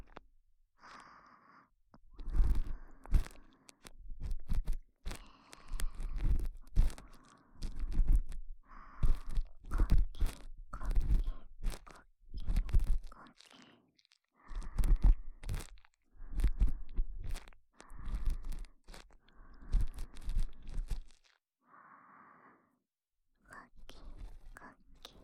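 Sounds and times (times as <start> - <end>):
ASMR ear cleaning: 2.2 - 13.1, 14.5 - 21.3.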